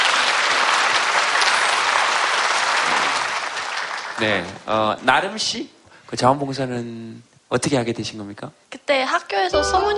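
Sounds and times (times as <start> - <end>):
audience applause: 0.0 - 4.6
speech: 4.2 - 9.9.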